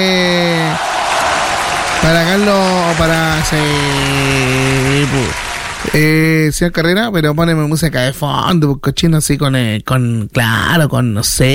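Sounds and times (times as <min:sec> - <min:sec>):
crowd applause: 0:00.3 - 0:06.5
speech: 0:02.1 - 0:11.5.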